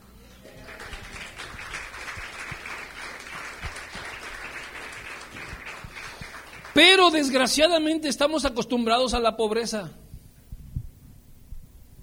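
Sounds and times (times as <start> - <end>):
audience applause: 0.4 - 7.6
speech: 6.8 - 10.0.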